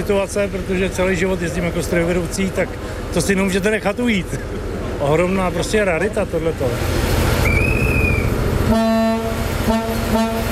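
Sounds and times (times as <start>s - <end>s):
diesel train engine rumble as the train departs: 0.0s - 10.5s
speech: 0.1s - 7.0s, 8.7s - 9.0s
high thin whistle: 7.4s - 8.4s
historic diesel train horn: 7.4s - 10.5s.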